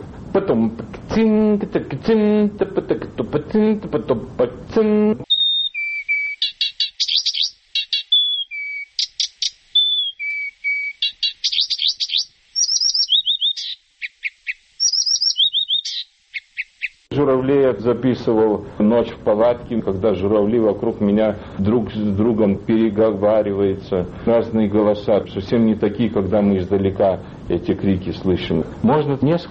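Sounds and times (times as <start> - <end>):
speech: 0.4 - 5.3, 17.5 - 29.4
reed warbler singing with trills: 5.2 - 17.0.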